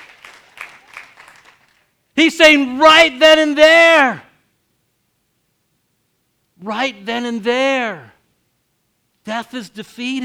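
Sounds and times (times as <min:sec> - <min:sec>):
audience applauding softly: 0:00.0 - 0:02.0
speech: 0:02.2 - 0:04.3, 0:06.6 - 0:08.1, 0:09.3 - 0:10.2.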